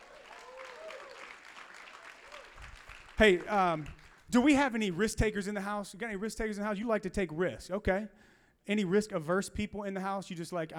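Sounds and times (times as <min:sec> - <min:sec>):
crowd clapping: 0:00.0 - 0:05.1
speech: 0:03.2 - 0:10.7.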